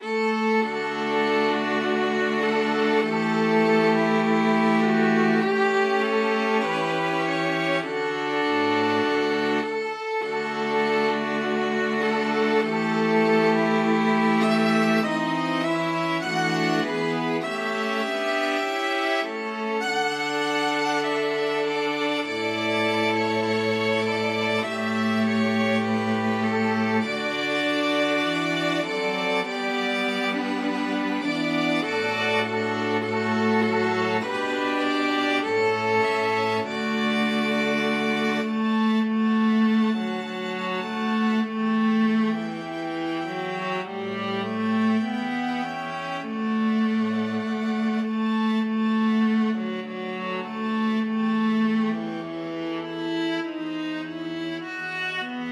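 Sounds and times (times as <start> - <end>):
string quartet playing: 0.0 - 55.4.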